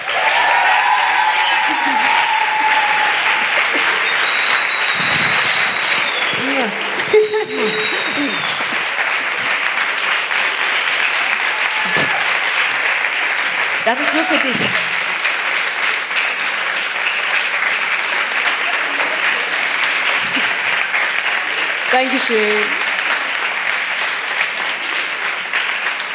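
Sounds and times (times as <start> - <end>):
audience shouts and voices: 0.0 - 9.5, 11.2 - 12.5
large audience applauding a guest on stage: 0.0 - 26.1
laughter: 1.1 - 10.1, 11.7 - 12.3, 18.5 - 20.9
speech: 13.9 - 14.8, 22.0 - 22.9.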